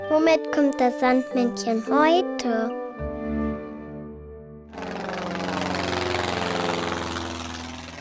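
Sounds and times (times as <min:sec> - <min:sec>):
speech: 0:00.2 - 0:02.8
airplane engine: 0:04.7 - 0:08.0.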